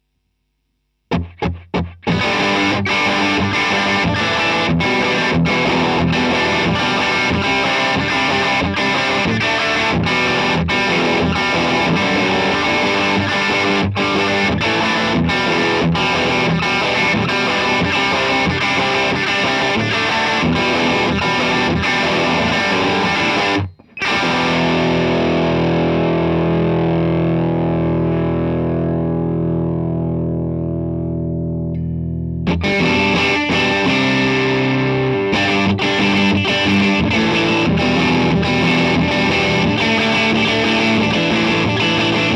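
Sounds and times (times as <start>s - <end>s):
low gain guitar riffs: 1.1s - 42.3s.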